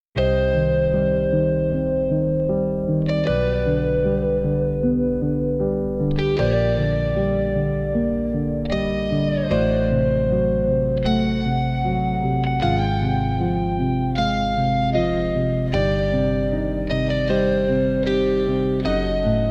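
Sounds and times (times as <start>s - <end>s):
epic instrumental rock music: 0.2s - 19.5s.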